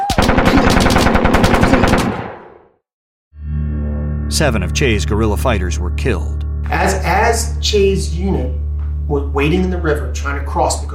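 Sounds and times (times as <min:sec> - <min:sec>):
machine gun fire: 0:00.1 - 0:02.6
low droning tone: 0:03.4 - 0:10.9
speech: 0:04.3 - 0:10.9.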